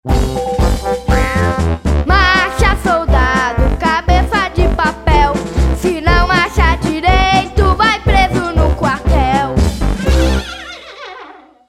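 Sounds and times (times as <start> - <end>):
soldier march music: 0.0 - 10.6.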